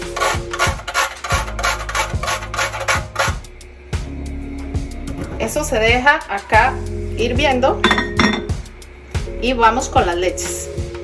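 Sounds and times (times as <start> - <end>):
grating nutmeg: 0.0 - 3.6
speech: 5.7 - 8.1, 9.4 - 10.7.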